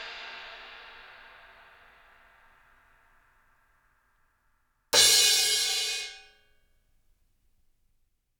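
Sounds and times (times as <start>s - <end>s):
cymbal crashes: 4.9s - 6.3s.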